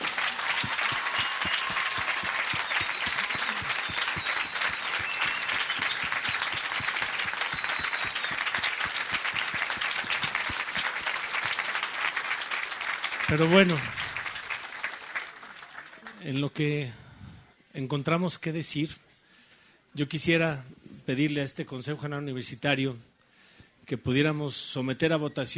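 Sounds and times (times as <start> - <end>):
audience applause: 0.0 - 16.2
speech: 13.3 - 14.0, 16.3 - 17.0, 17.8 - 19.0, 20.0 - 23.1, 23.9 - 25.5.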